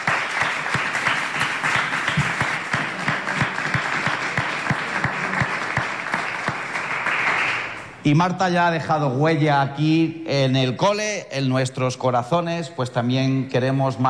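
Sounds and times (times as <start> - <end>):
applause for teachers: 0.0 - 8.0
speech: 8.0 - 14.0.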